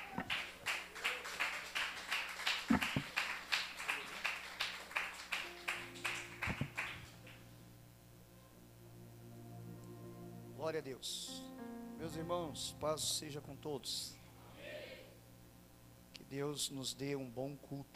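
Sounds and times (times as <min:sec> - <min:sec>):
audience applauding: 0:00.0 - 0:07.4
speech: 0:10.7 - 0:11.4, 0:12.0 - 0:14.2, 0:16.3 - 0:17.9.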